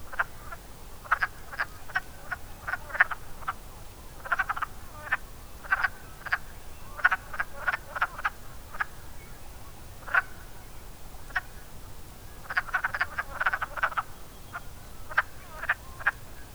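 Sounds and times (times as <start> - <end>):
wood frogs clucking croaks: 0.1 - 3.6, 4.2 - 9.0, 10.0 - 10.5, 12.4 - 16.5.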